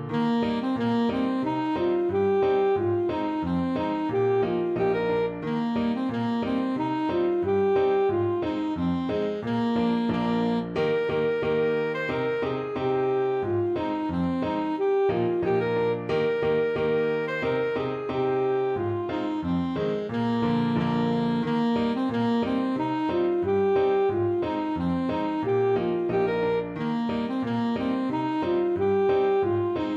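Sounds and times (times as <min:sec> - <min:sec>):
alto saxophone: 0:00.1 - 0:29.9.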